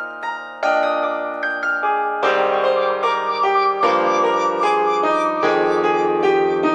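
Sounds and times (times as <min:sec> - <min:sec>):
pure electronica ringtone: 0:00.4 - 0:06.7.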